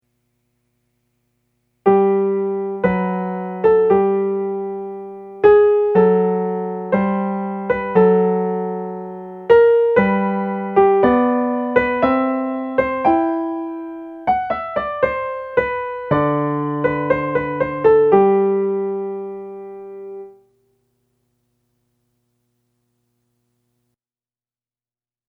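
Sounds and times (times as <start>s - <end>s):
adagio from a piano sonata: 1.8s - 20.6s.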